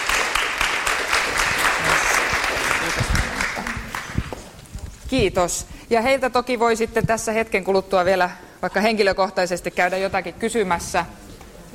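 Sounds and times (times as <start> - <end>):
audience applause: 0.0 - 4.4
speech: 5.1 - 11.7.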